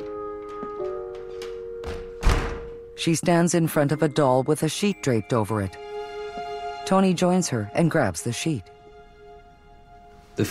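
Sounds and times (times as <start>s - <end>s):
door opening: 0.0s - 2.8s
speech: 3.0s - 5.9s, 6.9s - 8.8s.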